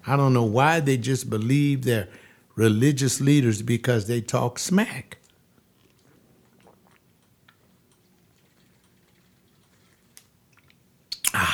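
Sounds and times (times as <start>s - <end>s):
speech: 0.1s - 5.2s
person drinking water: 5.2s - 11.5s.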